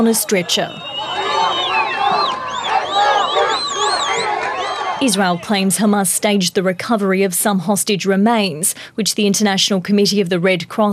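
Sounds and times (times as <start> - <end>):
speech: 0.0 - 1.2, 5.0 - 10.9
high wavering calls: 0.0 - 5.7
crowd shouting and chattering: 0.0 - 5.8.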